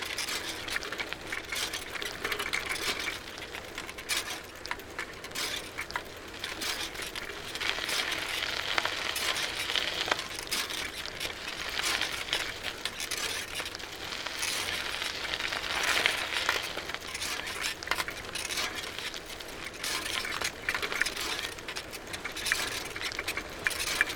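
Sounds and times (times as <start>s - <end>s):
bicycle: 0.0s - 24.1s.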